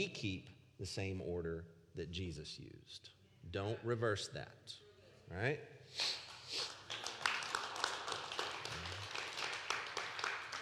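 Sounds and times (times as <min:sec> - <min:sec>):
speech: 0:00.0 - 0:06.7
audience clapping: 0:06.2 - 0:10.5.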